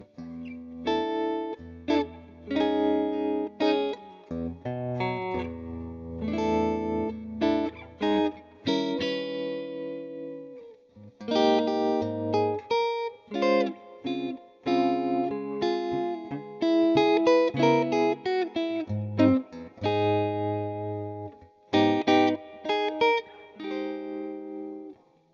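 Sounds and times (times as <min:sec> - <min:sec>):
electric guitar: 0:00.0 - 0:25.3.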